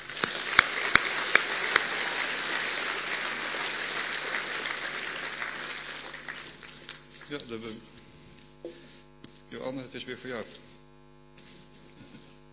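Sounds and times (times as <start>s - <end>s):
crowd applause: 0.0s - 7.5s
speech: 7.3s - 8.0s, 9.5s - 10.7s.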